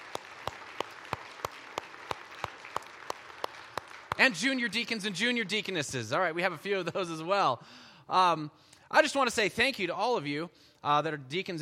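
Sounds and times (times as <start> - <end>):
audience applause: 0.0 - 4.9
speech: 4.2 - 11.6.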